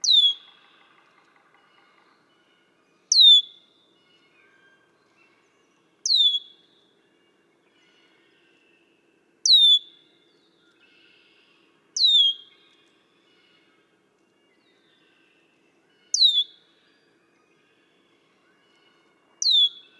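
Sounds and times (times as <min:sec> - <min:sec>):
red-winged blackbird downslurred whistle: 0:00.0 - 0:00.5, 0:03.1 - 0:03.6, 0:06.1 - 0:06.7, 0:09.5 - 0:10.0, 0:12.0 - 0:12.6, 0:16.2 - 0:16.6, 0:19.4 - 0:19.9.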